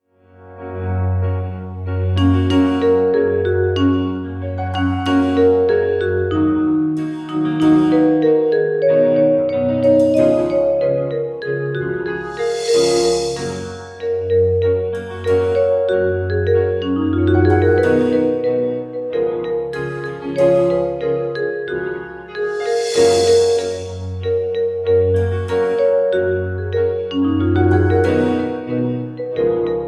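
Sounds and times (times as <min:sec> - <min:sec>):
Christmas song: 0:00.3 - 0:29.8.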